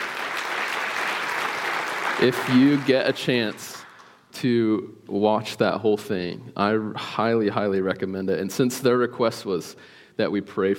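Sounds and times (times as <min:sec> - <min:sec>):
crowd applauding: 0:00.0 - 0:04.1
speech: 0:02.2 - 0:03.8, 0:04.4 - 0:10.7.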